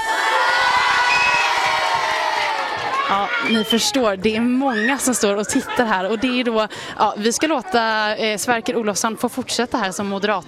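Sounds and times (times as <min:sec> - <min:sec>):
crowd of children cheering and screaming: 0:00.0 - 0:03.8, 0:04.6 - 0:05.7
speech: 0:03.1 - 0:10.4
laughter: 0:04.6 - 0:06.8.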